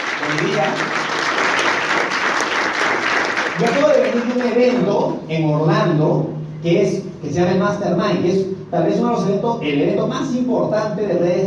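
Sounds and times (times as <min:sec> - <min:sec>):
audience clapping: 0:00.0 - 0:05.0
speech: 0:00.2 - 0:01.1, 0:03.6 - 0:11.4.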